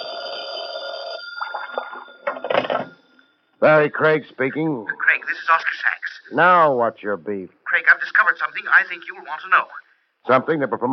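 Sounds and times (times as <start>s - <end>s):
telephone bell ringing: 0.0s - 3.5s
speech: 3.6s - 10.9s.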